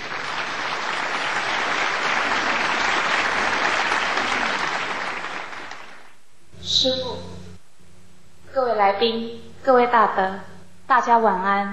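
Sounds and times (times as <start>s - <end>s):
audience applause: 0.0s - 6.2s
speech: 8.8s - 11.7s.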